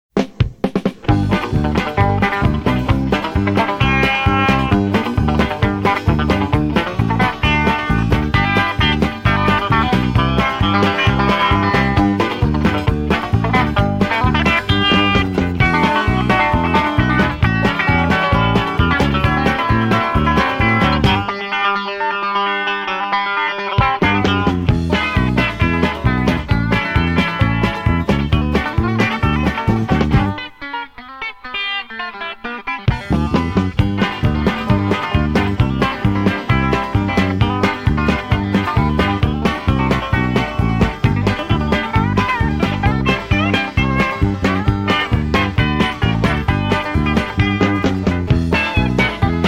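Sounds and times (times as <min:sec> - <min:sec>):
country Telecaster electric guitar: 0:00.2 - 0:49.4.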